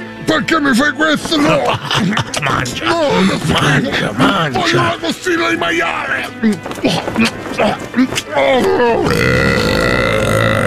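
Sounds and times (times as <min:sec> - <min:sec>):
speech: 0:00.3 - 0:10.0
laughter: 0:01.1 - 0:09.5
strained pitch-bending vocal groans: 0:06.8 - 0:10.6
violent flatulence from intestinal gas: 0:09.0 - 0:10.6.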